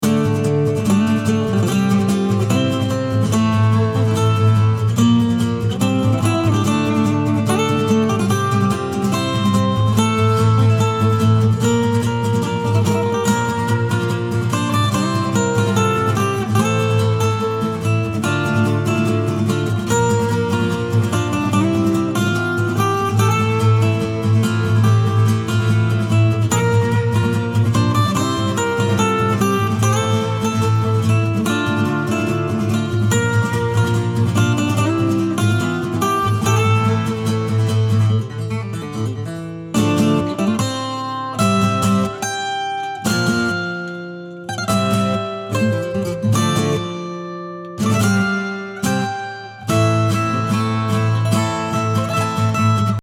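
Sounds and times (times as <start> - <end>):
short acoustic piece: 0.0 - 53.0.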